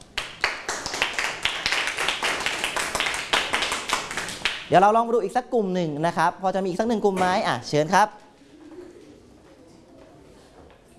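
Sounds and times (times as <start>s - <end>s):
classroom clapping for a student: 0.0s - 4.7s
speech: 4.7s - 8.2s.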